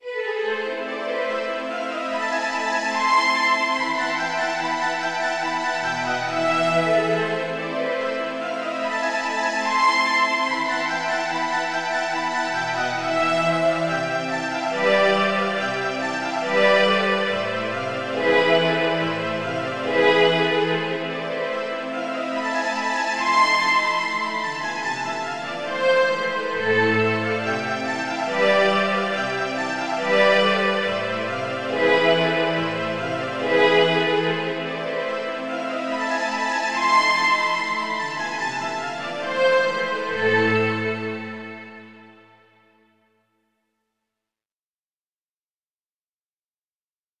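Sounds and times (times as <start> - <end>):
slow strings: 0.0 - 42.6.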